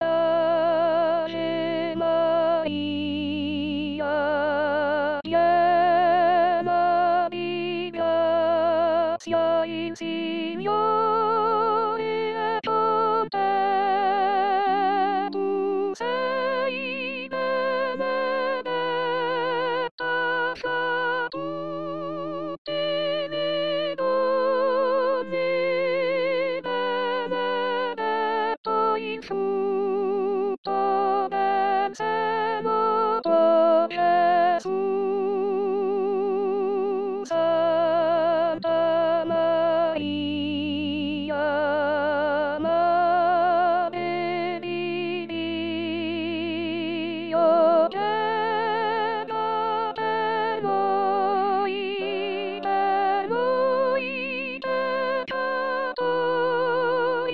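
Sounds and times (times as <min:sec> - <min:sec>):
soprano singing: 0:00.0 - 0:57.3.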